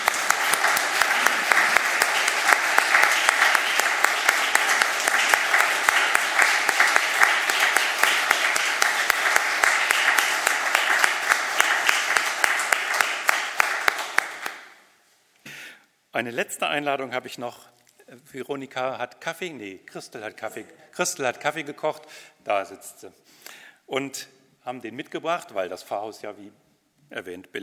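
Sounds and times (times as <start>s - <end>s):
audience applause in church: 0.0s - 14.7s
speech: 16.2s - 27.6s.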